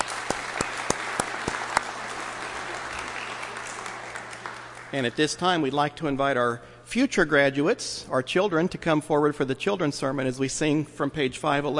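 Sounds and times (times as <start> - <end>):
audience applause: 0.0 - 5.4
speech: 4.9 - 11.7.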